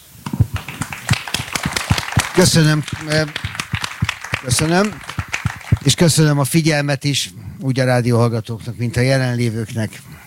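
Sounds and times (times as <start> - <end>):
applause: 0.3 - 6.4
speech: 2.4 - 3.6, 4.4 - 5.1, 5.8 - 10.1.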